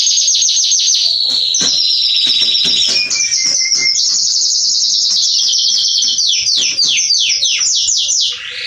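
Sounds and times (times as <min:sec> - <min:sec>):
Belgian canary trilled song: 0:00.0 - 0:08.6.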